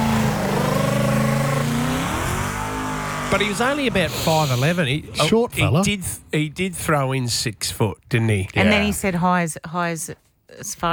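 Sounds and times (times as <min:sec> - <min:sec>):
Mustang car engine revving: 0:00.0 - 0:05.6
speech: 0:03.3 - 0:10.9.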